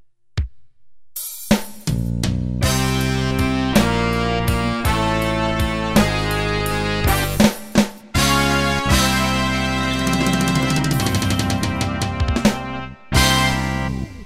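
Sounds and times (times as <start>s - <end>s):
slow blues preset style on a Yamaha QY70: 2.2s - 7.5s, 8.2s - 14.2s.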